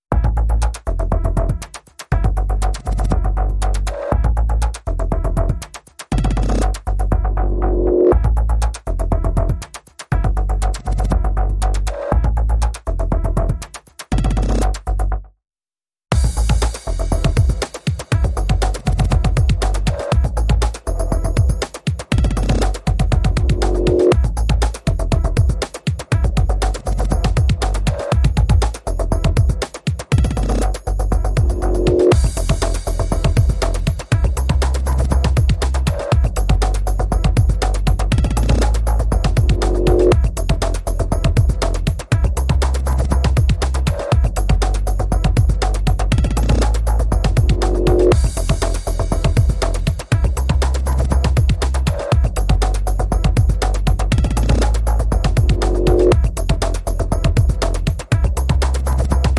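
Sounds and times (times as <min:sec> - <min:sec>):
drums: 0:00.0 - 0:07.4, 0:08.1 - 0:15.0, 0:16.1 - 0:59.3
bass: 0:00.0 - 0:15.4, 0:16.1 - 0:59.3.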